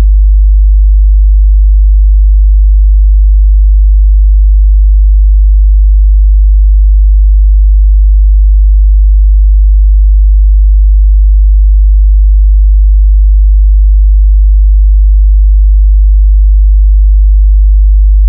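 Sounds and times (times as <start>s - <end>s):
50Hz sine tone: 0.0s - 18.2s.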